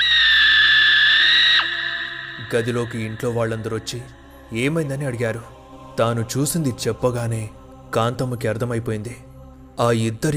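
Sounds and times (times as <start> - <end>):
woman screaming as she wakes from a nightmare: 0.0 - 2.5
speech: 2.5 - 10.3.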